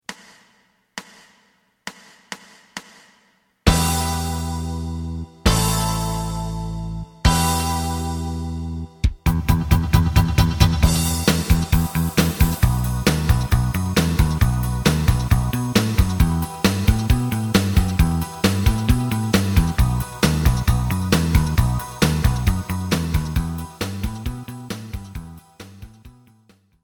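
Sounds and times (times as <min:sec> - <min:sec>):
lead melody: 0:03.7 - 0:25.6.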